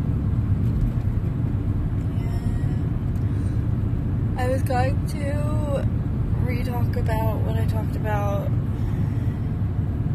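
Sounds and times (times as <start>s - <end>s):
car engine and road noise while driving: 0.0s - 10.1s
speech: 4.4s - 8.6s.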